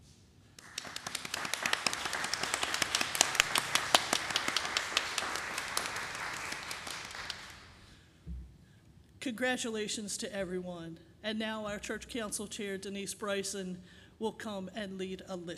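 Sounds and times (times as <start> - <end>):
audience applauding: 0.6 - 7.9
speech: 9.3 - 15.5.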